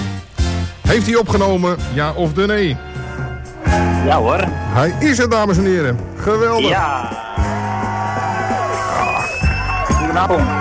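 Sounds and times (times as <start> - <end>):
speech: 0.9 - 2.9, 3.7 - 7.2, 10.2 - 10.5
people shouting: 6.5 - 10.5
lively audience cheering and whooping: 6.6 - 10.5.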